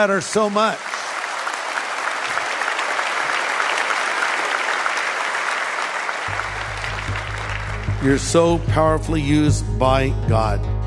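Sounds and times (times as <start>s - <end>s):
speech: 0.0s - 0.9s, 8.0s - 10.7s
audience applause for church volunteers: 0.0s - 8.7s.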